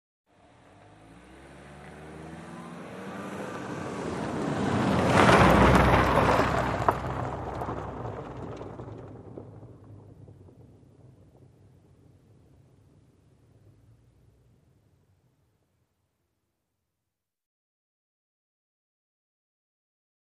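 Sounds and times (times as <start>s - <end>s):
sedan driving on pavement and gravel at medium speed: 0.4s - 15.2s.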